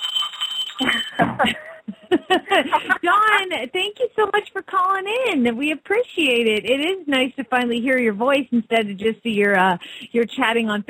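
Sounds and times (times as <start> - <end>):
jingle bell ringing: 0.0 - 1.7
speech: 0.8 - 1.7, 2.3 - 10.8
voices cheering and laughing: 0.8 - 3.4.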